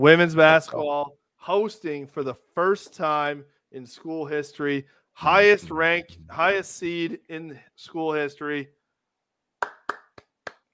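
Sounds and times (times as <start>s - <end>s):
speech: 0.0s - 8.8s
round of applause: 9.6s - 10.7s.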